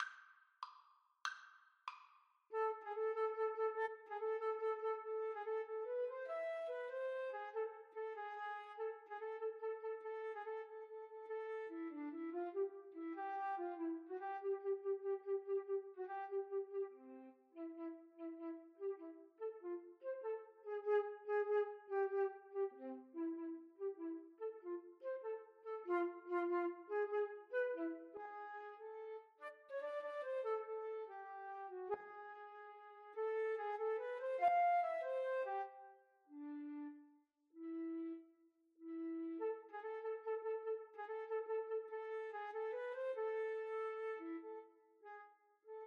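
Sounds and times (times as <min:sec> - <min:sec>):
flute duet: 0:02.5 - 0:45.8.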